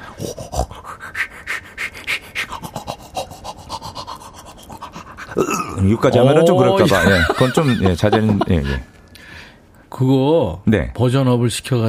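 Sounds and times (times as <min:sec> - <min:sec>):
voice imitating tooth brushing: 0:00.0 - 0:05.9
speech: 0:05.4 - 0:09.0, 0:10.0 - 0:11.8
laughter: 0:06.1 - 0:08.9.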